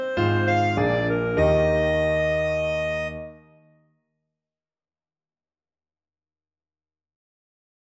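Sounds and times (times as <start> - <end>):
clarinet: 0.0 - 3.8.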